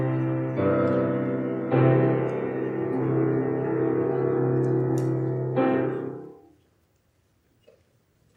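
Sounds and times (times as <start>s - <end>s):
instrumentalists playing before a service: 0.0s - 6.4s.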